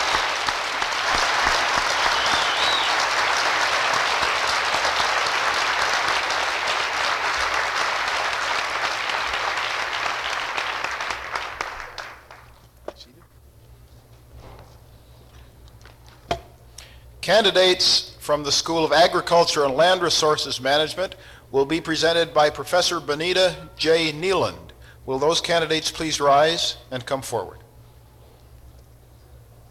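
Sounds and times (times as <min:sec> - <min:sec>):
audience applause: 0:00.0 - 0:12.6
speech: 0:17.3 - 0:27.6.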